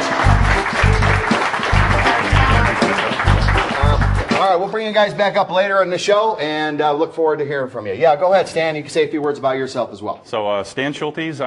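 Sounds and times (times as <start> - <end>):
audience applause: 0.0 - 4.6
speech: 4.5 - 11.4.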